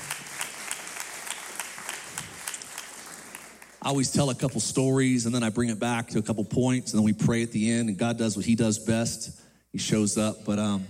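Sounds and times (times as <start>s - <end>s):
audience applause: 0.0s - 3.8s
speech: 3.8s - 10.8s.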